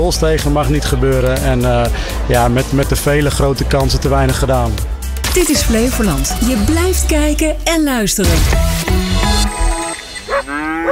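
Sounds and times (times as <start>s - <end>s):
speech: 0.0s - 9.7s
cattle mooing on farm: 10.3s - 10.9s.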